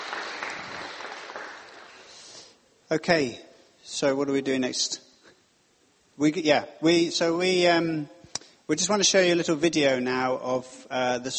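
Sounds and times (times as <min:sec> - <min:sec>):
audience applause: 0:00.0 - 0:02.2
speech: 0:02.9 - 0:05.0, 0:06.2 - 0:11.3.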